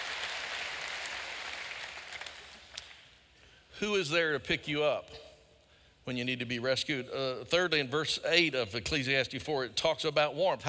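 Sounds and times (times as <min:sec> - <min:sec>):
audience clapping: 0:00.0 - 0:03.1
speech: 0:03.8 - 0:05.3, 0:06.1 - 0:10.6.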